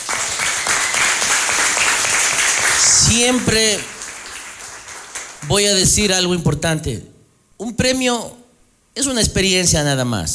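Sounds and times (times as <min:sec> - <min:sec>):
audience applause: 0:00.0 - 0:06.1
speech: 0:03.0 - 0:03.9, 0:05.4 - 0:08.4, 0:09.0 - 0:10.3.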